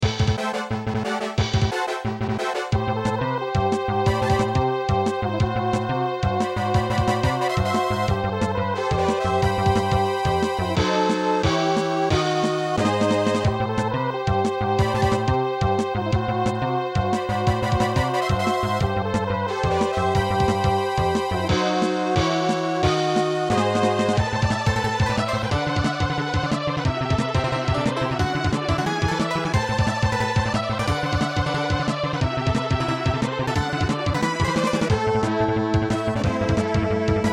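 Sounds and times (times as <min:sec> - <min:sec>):
battle music: 0:00.0 - 0:37.3.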